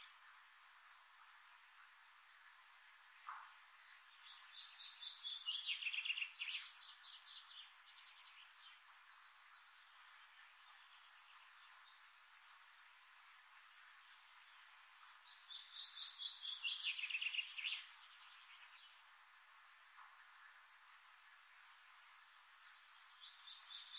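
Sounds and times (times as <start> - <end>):
birds singing in the morning: 3.9 - 12.0, 15.3 - 19.0, 22.2 - 23.9.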